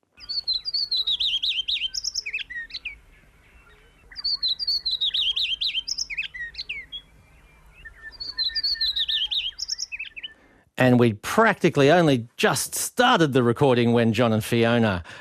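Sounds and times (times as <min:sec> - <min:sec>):
shy heath wren singing: 0:00.0 - 0:10.4
faint hiss: 0:00.0 - 0:15.2
speech: 0:10.8 - 0:15.2.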